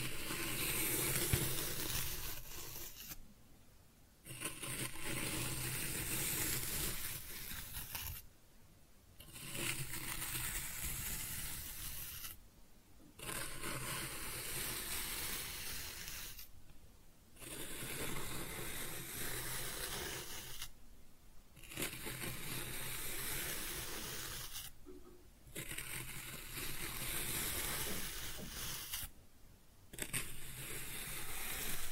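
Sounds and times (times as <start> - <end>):
kinetic sand cut and scooped: 0.0 - 3.2, 4.3 - 8.2, 9.3 - 12.4, 13.2 - 16.5, 17.4 - 20.7, 21.7 - 24.7, 25.6 - 29.1, 30.0 - 31.9.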